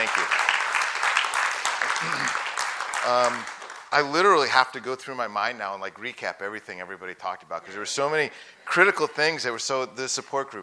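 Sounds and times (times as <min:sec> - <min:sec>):
audience applause: 0:00.0 - 0:04.4
speech: 0:02.0 - 0:02.4, 0:03.0 - 0:10.6.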